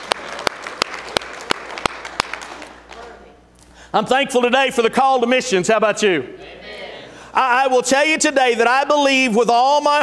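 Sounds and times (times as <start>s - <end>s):
hand clapping: 0.0s - 3.2s
speech: 3.9s - 6.5s, 7.3s - 10.0s.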